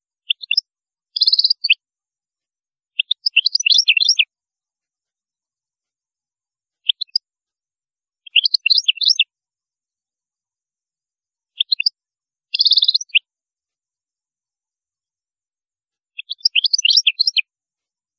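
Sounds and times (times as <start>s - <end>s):
European goldfinch singing: 0.3s - 1.8s, 3.0s - 4.3s, 6.8s - 7.2s, 8.3s - 9.2s, 11.6s - 13.2s, 16.2s - 17.5s.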